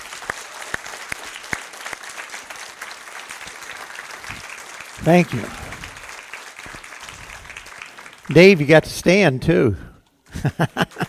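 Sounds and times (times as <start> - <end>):
audience applause for veterans: 0.0 - 9.2, 10.2 - 11.0
speech: 5.0 - 5.6, 8.3 - 11.0
laughter: 10.3 - 11.0.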